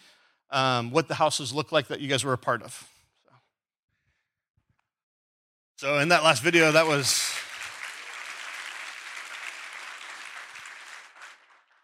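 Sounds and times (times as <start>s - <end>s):
speech: 0.5s - 3.0s, 5.8s - 7.5s
audience clapping: 6.0s - 11.8s.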